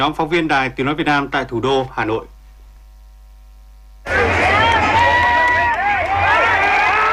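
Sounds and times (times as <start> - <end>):
speech: 0.0 - 2.4
football fans roaring in the streets of Hanoi near My Dinh stadium: 4.0 - 7.1.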